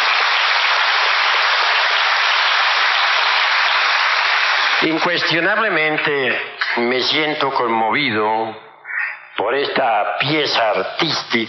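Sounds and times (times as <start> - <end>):
audience applause: 0.0 - 5.4
speech: 4.8 - 8.7, 9.4 - 11.4.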